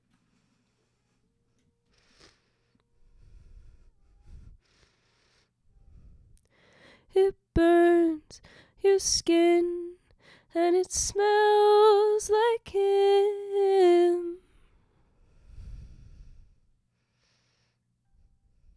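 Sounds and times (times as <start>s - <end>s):
vocal harmony: 7.1s - 14.5s.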